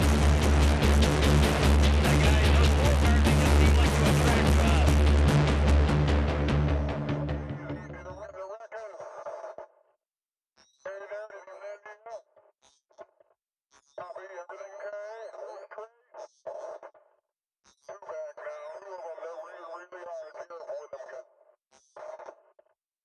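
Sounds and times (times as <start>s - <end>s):
post-race music: 0.0s - 8.3s.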